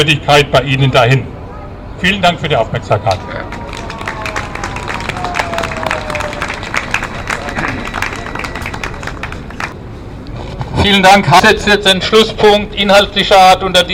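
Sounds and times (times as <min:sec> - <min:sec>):
speech: 0:00.0 - 0:01.3, 0:02.0 - 0:03.6, 0:10.8 - 0:13.9
crowd applauding at a rally: 0:03.3 - 0:09.8.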